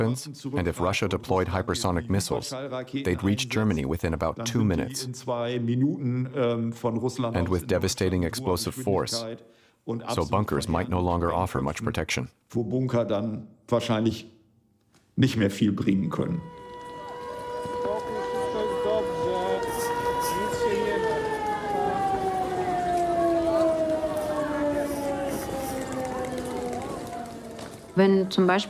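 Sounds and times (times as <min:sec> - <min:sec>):
speech: 0:00.0 - 0:14.4, 0:15.2 - 0:16.6, 0:28.0 - 0:28.6
civil defense air raid siren wailing: 0:16.1 - 0:28.6.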